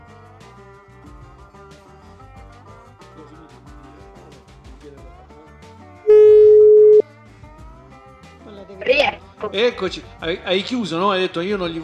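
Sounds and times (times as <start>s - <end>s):
phone busy tone after dropped call: 6.1s - 7.0s
speech: 9.5s - 11.8s.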